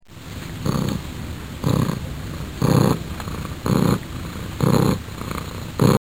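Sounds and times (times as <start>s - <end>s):
purr: 0.5s - 5.9s.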